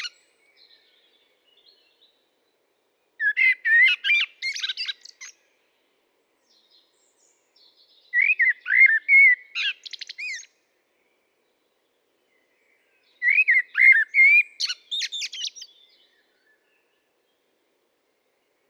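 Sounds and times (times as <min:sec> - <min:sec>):
common blackbird singing: 0:03.2 - 0:05.4, 0:06.5 - 0:10.5, 0:12.4 - 0:17.0.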